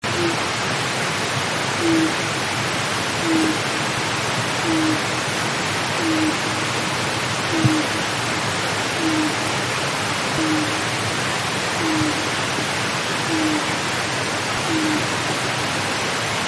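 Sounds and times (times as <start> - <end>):
Japanese night heron deep soft hoots: 0.0 - 0.4, 1.8 - 2.3, 3.1 - 3.9, 4.6 - 8.2, 8.9 - 11.0, 11.8 - 12.6, 13.2 - 13.9, 14.6 - 15.3
constant hiss: 0.0 - 16.4.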